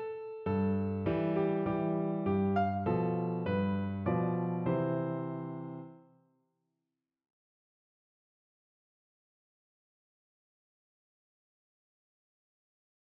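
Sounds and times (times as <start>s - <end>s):
piano: 0.0s - 6.2s.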